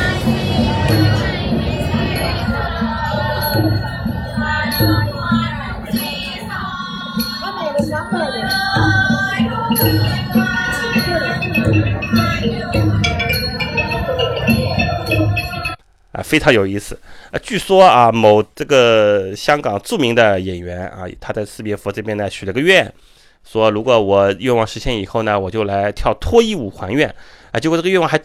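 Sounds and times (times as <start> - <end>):
group of high female voices singing traditional Thai music: 0.0 - 15.8
plucked or struck instruments: 0.0 - 15.8
steady regular drum beat: 0.0 - 15.8
speech: 16.3 - 28.2.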